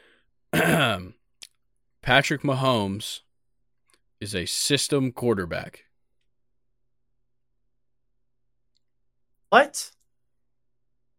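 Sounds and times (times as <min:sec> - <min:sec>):
throat clearing: 0:00.6 - 0:01.1
speech: 0:02.1 - 0:03.2, 0:04.2 - 0:05.9, 0:09.5 - 0:10.0.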